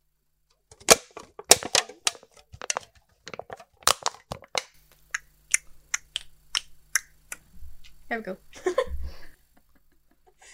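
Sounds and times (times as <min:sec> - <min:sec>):
faint low hum: 0:00.0 - 0:10.5
metal can being handled: 0:00.7 - 0:04.7
speech: 0:08.1 - 0:08.8.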